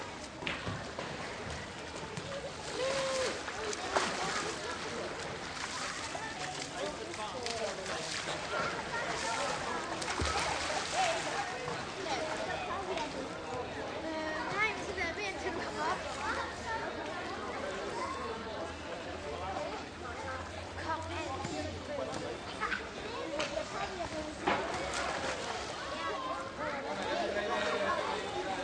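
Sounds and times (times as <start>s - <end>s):
children and adults hanging out near a hotel resort swimming pool: 0.0s - 28.6s
people playing and splashing in swimming pool water: 0.4s - 13.3s, 23.5s - 26.2s.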